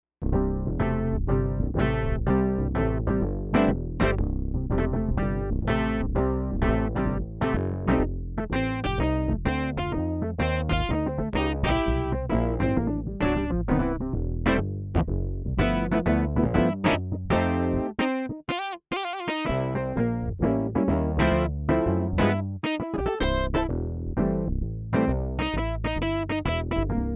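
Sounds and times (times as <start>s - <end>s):
tube amplifier: 0.2s - 17.9s, 19.3s - 27.0s.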